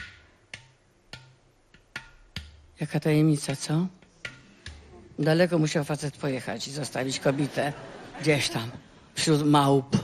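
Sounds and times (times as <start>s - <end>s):
udu clay pot drum being struck: 0.0s - 2.8s, 3.4s - 5.0s
speech: 2.8s - 4.0s, 5.2s - 10.0s.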